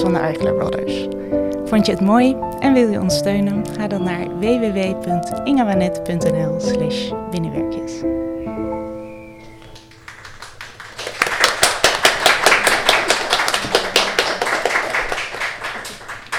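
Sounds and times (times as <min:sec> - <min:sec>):
speech: 0:00.0 - 0:08.2
audience applause: 0:09.8 - 0:16.3.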